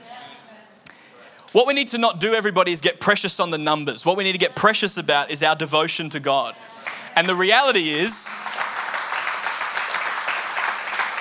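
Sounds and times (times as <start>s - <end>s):
speech: 1.5s - 8.6s
audience applause during a church sermon: 6.8s - 11.1s.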